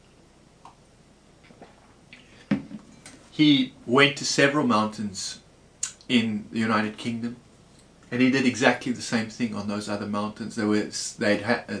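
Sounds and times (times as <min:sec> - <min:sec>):
person sipping tea: 0:01.4 - 0:02.5
speech: 0:03.4 - 0:05.4, 0:06.1 - 0:07.4, 0:08.1 - 0:11.7.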